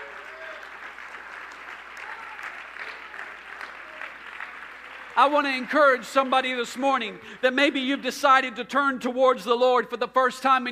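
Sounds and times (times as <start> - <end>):
audience clapping hands: 0.0 - 7.9
speech: 5.2 - 10.7.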